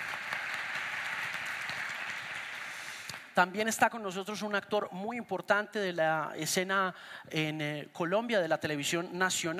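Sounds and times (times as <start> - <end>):
audience applause: 0.0 - 3.3
speech: 3.4 - 9.5.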